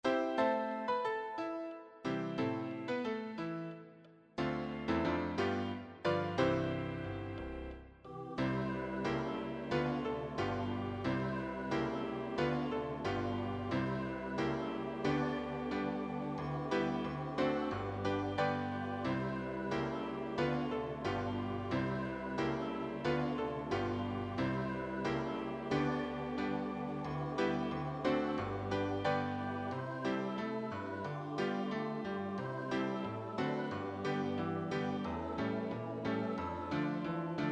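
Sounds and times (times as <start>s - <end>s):
piano: 0.0s - 37.5s.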